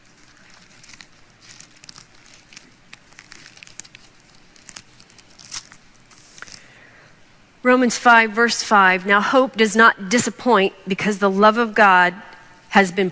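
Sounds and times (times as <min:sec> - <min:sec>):
thin Bible pages rustling and flipping: 0:00.0 - 0:06.8
speech: 0:07.6 - 0:13.0.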